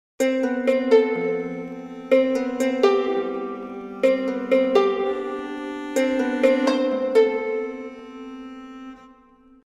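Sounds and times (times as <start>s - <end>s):
lute playing: 0.2s - 9.6s.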